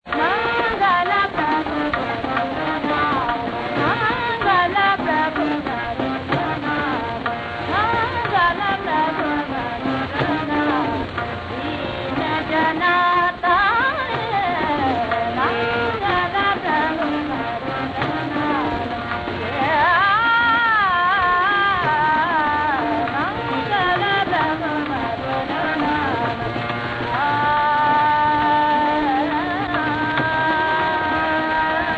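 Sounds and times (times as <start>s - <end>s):
Hindustani raga: 0.0s - 31.9s.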